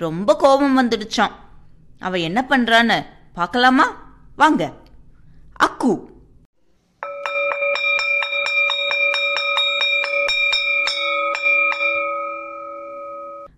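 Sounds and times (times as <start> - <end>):
speech: 0.0 - 1.4, 2.0 - 4.8, 5.6 - 6.1
school bell ringing: 7.0 - 13.5.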